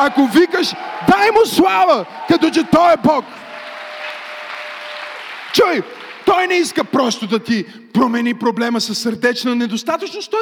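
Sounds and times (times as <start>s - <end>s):
speech: 0.0s - 3.4s, 5.5s - 10.3s
audience clapping: 0.0s - 7.5s.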